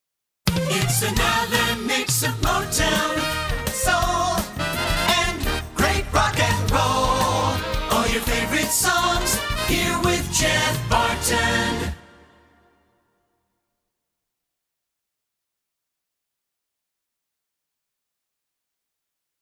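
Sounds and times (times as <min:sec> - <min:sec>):
song: 0:00.5 - 0:12.9.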